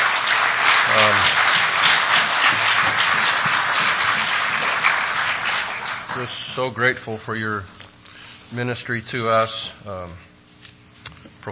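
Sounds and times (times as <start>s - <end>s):
audience applause: 0.0s - 6.6s
speech: 6.2s - 7.8s, 8.5s - 10.3s.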